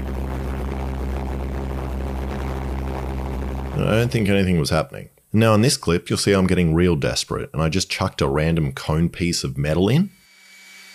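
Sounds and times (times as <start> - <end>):
pulse jet engine running: 0.0 - 4.4
speech: 3.8 - 10.2.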